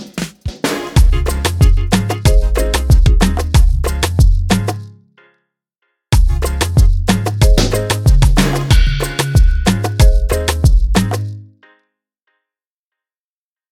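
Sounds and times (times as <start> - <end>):
hard country instrumental music: 0.7 - 4.9, 6.3 - 11.4.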